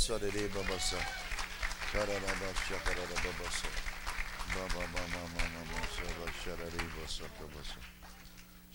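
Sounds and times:
audience clapping: 0.0s - 8.5s
voices calling and cheering: 0.3s - 3.8s, 4.6s - 7.9s.

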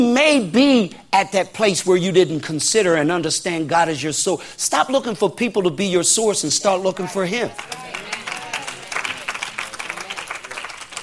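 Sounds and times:
speech: 0.0s - 8.1s
audience applause: 7.5s - 11.0s.

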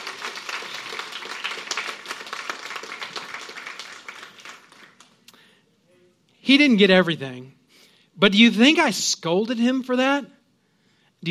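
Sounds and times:
audience clapping: 0.0s - 5.5s
speech: 6.5s - 7.6s, 8.2s - 10.4s.

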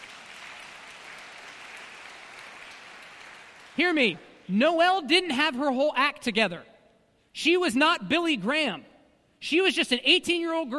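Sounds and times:
audience clapping: 0.0s - 4.4s
speech: 3.8s - 6.7s, 7.4s - 10.7s.

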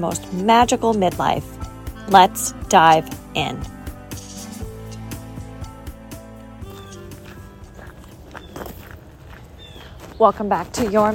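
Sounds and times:
speech: 0.0s - 3.7s, 10.2s - 11.1s
footsteps walking in Harrisburg, Pennsylvania: 3.9s - 11.1s.

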